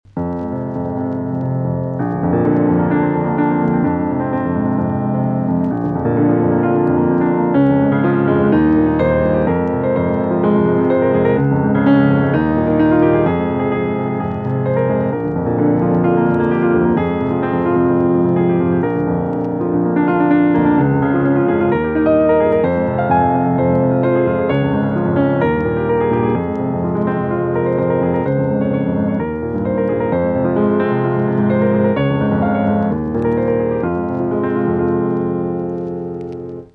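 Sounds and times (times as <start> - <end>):
micropiano: 0.0 - 36.7.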